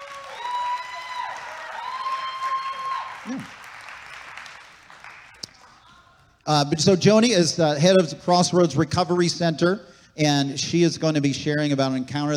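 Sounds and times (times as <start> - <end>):
crowd applauding: 0.0 - 6.2
speech: 3.2 - 3.6, 6.5 - 12.3.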